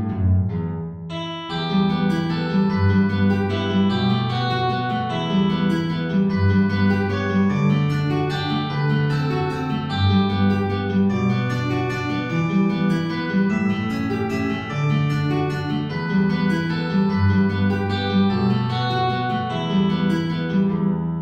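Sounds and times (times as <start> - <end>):
high electric guitar: 0.1 - 21.0.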